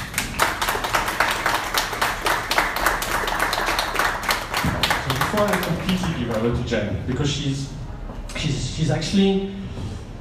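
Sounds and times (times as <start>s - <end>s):
audience applause: 0.0s - 6.7s
speech: 5.4s - 7.8s, 8.4s - 9.6s.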